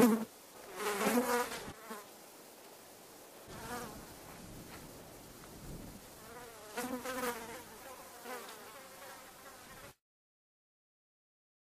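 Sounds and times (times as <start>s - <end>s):
fly buzzing: 0.0s - 2.2s, 3.5s - 4.4s, 6.0s - 10.0s.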